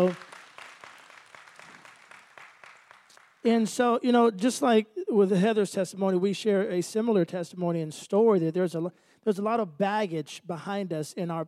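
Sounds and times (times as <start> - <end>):
speech: 0.0 - 0.2, 3.4 - 11.4
hand clapping applause: 0.0 - 3.8.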